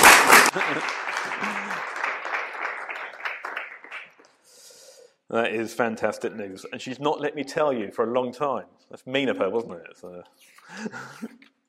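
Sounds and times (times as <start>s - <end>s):
audience applause: 0.0s - 4.2s
speech: 0.5s - 1.0s, 5.3s - 11.5s.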